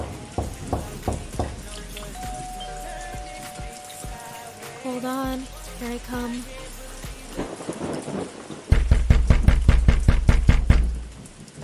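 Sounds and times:
speech: 0:05.0 - 0:06.6
loud knocking on a door: 0:08.7 - 0:11.0.

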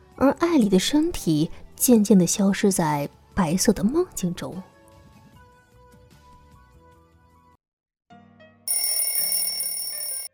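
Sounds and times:
speech: 0:00.2 - 0:04.7
alarm clock ringing: 0:08.7 - 0:10.3.

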